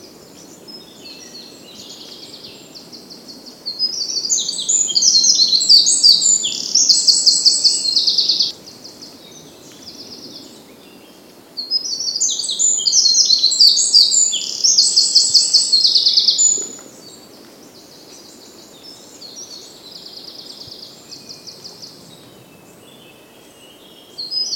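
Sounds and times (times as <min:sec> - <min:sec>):
Eurasian wren song: 0:00.0 - 0:21.9.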